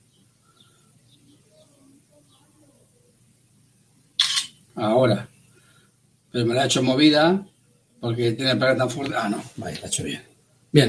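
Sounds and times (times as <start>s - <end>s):
faint low hum: 0.0s - 10.8s
camera shutter taking a photo: 4.2s - 4.6s
speech: 4.8s - 5.3s, 6.3s - 10.8s.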